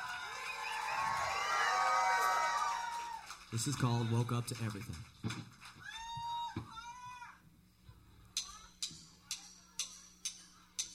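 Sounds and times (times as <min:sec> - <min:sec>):
audience cheering for choir: 0:00.0 - 0:04.9, 0:05.8 - 0:07.3
audience applause for choir: 0:00.0 - 0:06.2
speech: 0:03.5 - 0:05.6.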